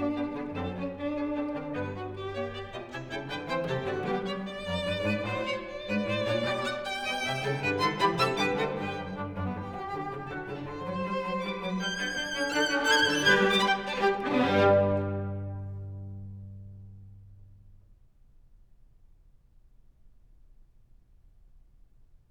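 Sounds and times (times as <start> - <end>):
string quartet playing a scherzo: 0.0 - 17.2.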